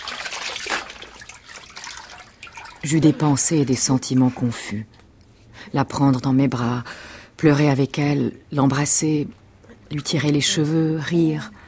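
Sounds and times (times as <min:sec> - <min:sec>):
water rinsing a person standing up to bathe: 0:00.0 - 0:03.0
speech: 0:02.8 - 0:05.0, 0:05.7 - 0:11.6.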